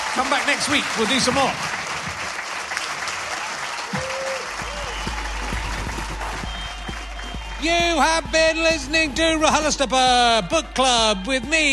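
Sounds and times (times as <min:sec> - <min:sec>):
audience applause: 0:00.0 - 0:11.7
speech: 0:00.2 - 0:01.8, 0:07.6 - 0:11.7
crowd cheering and whooping: 0:02.7 - 0:11.7.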